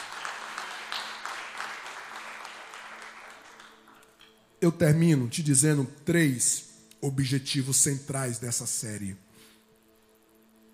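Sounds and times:
audience applauding: 0.0s - 4.2s
speech: 4.6s - 9.3s.

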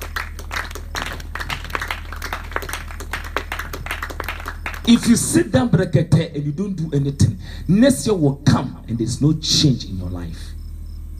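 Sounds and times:
audience clapping: 0.0s - 5.7s
speech: 4.8s - 10.5s.

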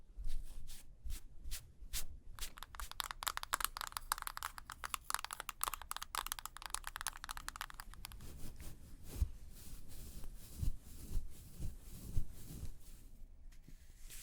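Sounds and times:
makeup being applied, soft brushing and rubbing strokes: 0.3s - 13.0s
small clicks and taps: 2.4s - 8.3s.

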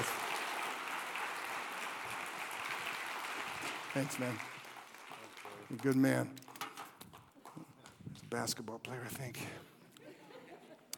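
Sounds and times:
crowd applauding: 0.0s - 7.8s
speech: 4.0s - 4.5s, 5.7s - 6.4s, 8.3s - 9.7s
laughter: 9.9s - 10.9s.

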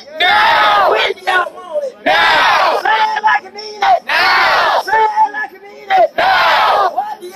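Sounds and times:
protesters chanting in unison at Niagara Square in Buffalo: 0.2s - 3.0s, 3.9s - 5.0s, 5.8s - 7.3s.

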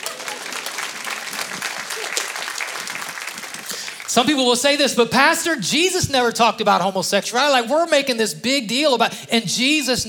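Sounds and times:
audience clapping: 0.0s - 4.8s
speech: 4.2s - 10.0s.

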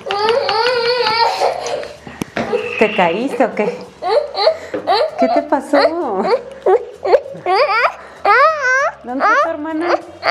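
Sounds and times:
child crying: 0.0s - 2.0s, 4.0s - 10.3s
speech: 2.8s - 4.2s, 4.9s - 6.5s, 9.1s - 10.3s.

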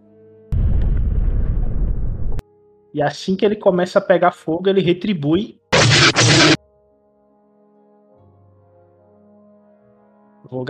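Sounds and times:
spaceship explosion game sound effect: 0.5s - 2.4s, 5.8s - 6.6s
speech: 2.9s - 6.6s.

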